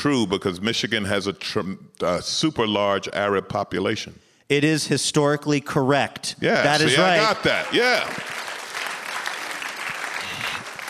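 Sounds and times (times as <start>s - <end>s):
speech: 0.0s - 8.5s
audience clapping: 6.7s - 10.8s.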